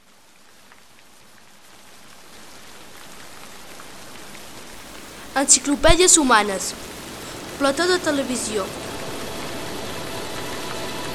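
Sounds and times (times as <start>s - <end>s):
audience applause: 4.9s - 9.0s
speech: 5.4s - 7.0s, 7.6s - 8.9s.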